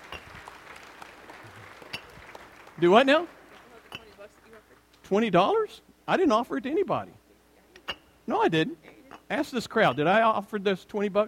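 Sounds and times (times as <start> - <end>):
faint audience applause for a volunteer: 0.0 - 3.9
speech: 2.8 - 3.4, 5.1 - 7.2, 8.3 - 11.2.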